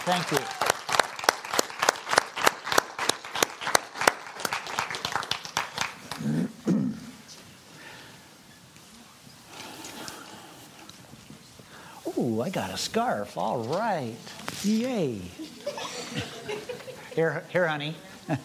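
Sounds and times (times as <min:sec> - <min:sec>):
audience applauding a group of children: 0:00.0 - 0:06.6
speech: 0:00.1 - 0:00.7, 0:12.4 - 0:15.4, 0:17.2 - 0:18.4
laughter: 0:15.3 - 0:17.6.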